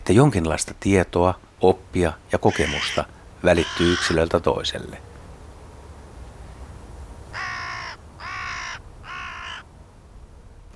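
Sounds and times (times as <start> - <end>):
speech: 0.1 - 5.1
Hooded Crow cawing: 2.5 - 4.2, 7.3 - 9.7.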